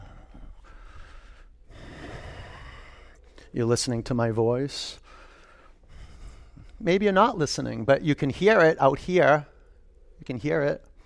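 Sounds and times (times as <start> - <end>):
noisy breathing: 0.0 - 3.6, 4.8 - 6.9
speech: 3.5 - 5.0, 6.8 - 9.5, 10.2 - 10.9.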